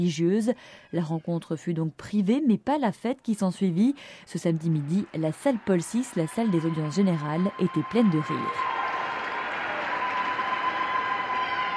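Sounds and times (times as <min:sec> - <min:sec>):
speech: 0:00.0 - 0:08.8
crowd cheering and clapping: 0:04.4 - 0:11.7.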